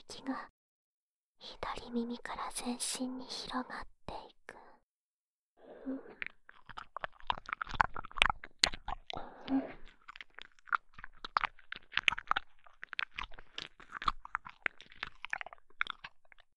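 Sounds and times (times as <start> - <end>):
speech: 0.1 - 0.5, 1.4 - 4.6, 5.8 - 6.3
wet squelching ear-licking sounds: 6.2 - 16.4.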